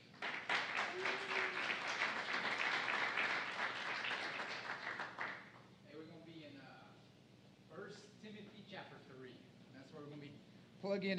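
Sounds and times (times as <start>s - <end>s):
audience applause: 0.0s - 5.5s
speech: 10.1s - 11.1s.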